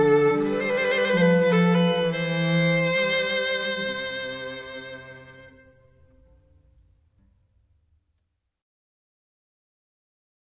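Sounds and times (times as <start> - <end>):
violin playing andante: 0.0 - 6.6
cello playing andante: 0.0 - 6.7.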